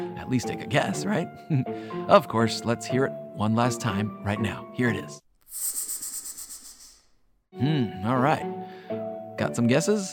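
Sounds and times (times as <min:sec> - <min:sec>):
speech: 0:00.2 - 0:05.8, 0:07.5 - 0:10.1
snake hissing: 0:05.4 - 0:07.4.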